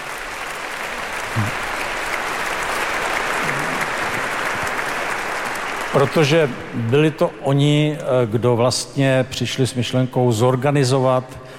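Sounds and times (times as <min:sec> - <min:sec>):
applause from a large audience: 0:00.0 - 0:07.2
faint voices murmuring: 0:01.4 - 0:01.6
speech: 0:06.0 - 0:11.5.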